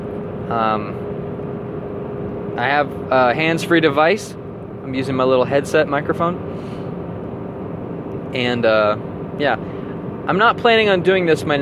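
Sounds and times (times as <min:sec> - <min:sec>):
car engine and road rumble inside a car on the Autobahn: 0:00.0 - 0:11.6
speech: 0:00.5 - 0:01.1, 0:02.6 - 0:06.8, 0:08.3 - 0:09.7, 0:10.3 - 0:11.6.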